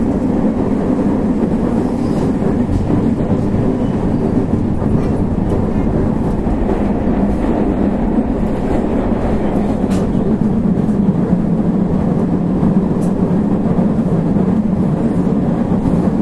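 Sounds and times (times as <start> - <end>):
JR West 221 series Yamatoji Rapid train running: 0.0 - 16.2.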